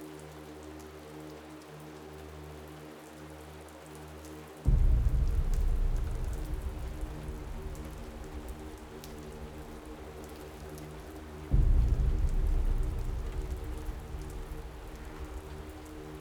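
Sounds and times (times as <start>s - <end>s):
heavy low rumble: 4.7s - 16.1s
low drone in Samadhi Cave: 4.7s - 16.1s.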